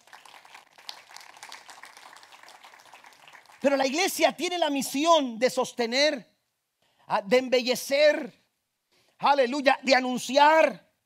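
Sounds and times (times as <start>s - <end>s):
audience applauding: 0.0s - 4.0s
speech: 3.6s - 6.3s, 7.1s - 8.4s, 9.2s - 10.8s.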